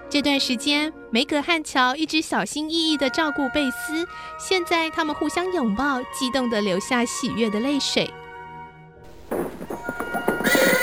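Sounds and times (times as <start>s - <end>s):
speech: 0.1s - 8.2s
horse-drawn carriage hooves clopping: 9.1s - 10.8s
horse whinnying: 9.9s - 10.8s.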